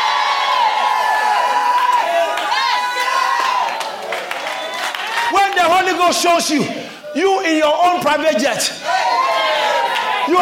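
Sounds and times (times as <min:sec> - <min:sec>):
audience shouting: 0:00.0 - 0:05.8, 0:08.8 - 0:10.3
speech: 0:05.7 - 0:09.0.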